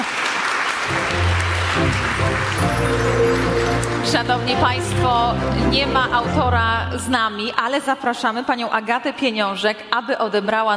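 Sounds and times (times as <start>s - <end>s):
audience applause: 0.0s - 4.8s
speech: 4.1s - 10.7s.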